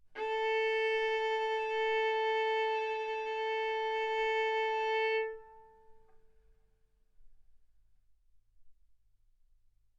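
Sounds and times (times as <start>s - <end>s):
violin bowed mezzo-forte on the A string, A4 and B4: 0.2s - 6.1s.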